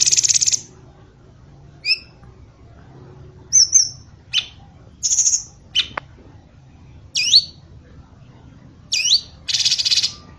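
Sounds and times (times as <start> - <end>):
bird song of sharp high chirps, slurred whistles and buzzy rattles: 0.0 - 0.7, 1.8 - 2.2, 3.5 - 6.0, 7.1 - 7.6, 8.9 - 10.3.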